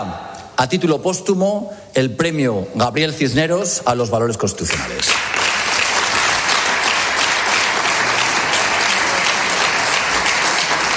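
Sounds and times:
speech: 0.0 - 5.3
large crowd applauding in a parliament chamber: 4.7 - 10.9.

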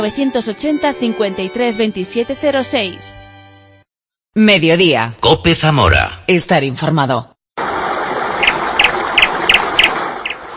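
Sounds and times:
speech: 0.0 - 3.2, 4.4 - 7.3
stream of falling water gushing: 7.6 - 10.5
turtle dove chirping: 8.4 - 10.5.

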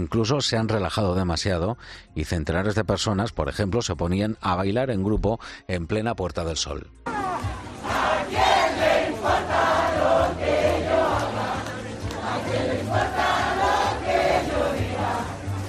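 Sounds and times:
speech: 0.0 - 7.1
crowd cheering and shouting in snow: 7.1 - 15.6.

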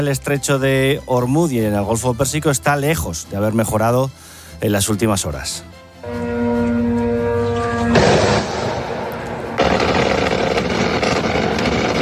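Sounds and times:
speech: 0.0 - 6.2
drone engine buzz: 6.0 - 12.0
loud crackling noise burst: 7.6 - 12.0
gunfire-like rattling over a city: 9.6 - 12.0.

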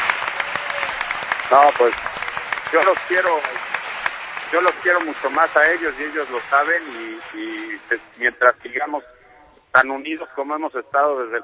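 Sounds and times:
applause from the people of Oviedo for a football club: 0.0 - 8.3
speech: 1.5 - 3.7, 4.5 - 9.2, 9.8 - 11.4.

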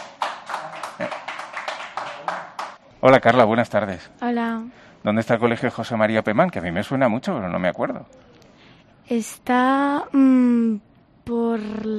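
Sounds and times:
audience applause: 0.0 - 2.8
speech: 3.0 - 8.3, 9.1 - 11.9.

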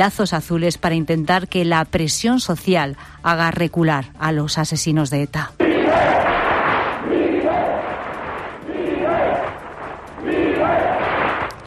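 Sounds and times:
speech: 0.0 - 6.2
protest crowd shouting in Bilbao: 5.6 - 11.5.

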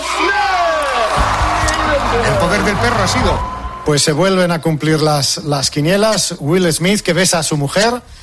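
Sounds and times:
audience applause and cheering: 0.2 - 4.7
speech: 2.8 - 8.2.

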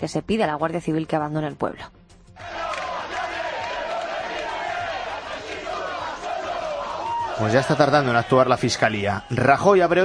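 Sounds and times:
speech: 0.0 - 2.6, 7.4 - 10.0
large crowd shouting and jeering: 2.4 - 9.4.

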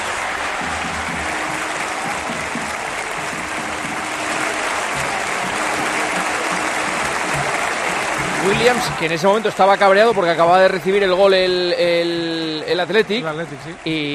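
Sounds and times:
stadium crowd applauding: 0.0 - 14.1
speech: 8.5 - 14.1.

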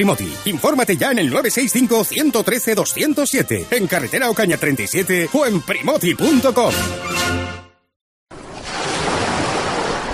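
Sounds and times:
speech: 0.0 - 7.4
sea waves breaking: 8.3 - 10.1.

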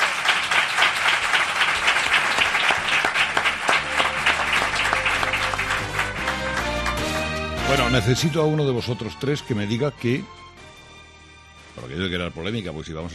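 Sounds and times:
audience applause: 0.0 - 8.6
speech: 7.7 - 10.4, 11.8 - 13.1.

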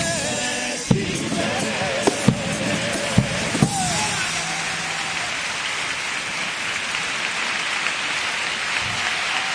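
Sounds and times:
theatre audience standing ovation applause: 0.2 - 9.5
cheers and shouts: 3.1 - 9.5.

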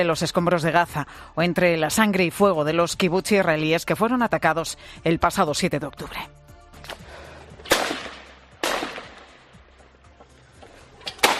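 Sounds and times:
speech: 0.0 - 7.0
gunfire as Hamas attackers storm a house in an Israeli kibbutz: 7.6 - 9.5, 11.2 - 11.3.

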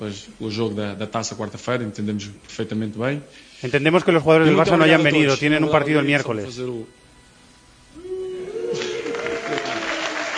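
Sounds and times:
speech: 0.0 - 7.0
crowd whistling: 7.9 - 10.3
crowd applauding: 8.4 - 10.3.

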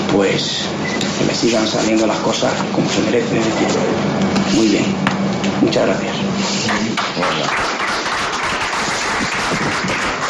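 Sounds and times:
speech: 0.1 - 7.8
applause in the press room of the Alcoraz: 7.0 - 10.2.

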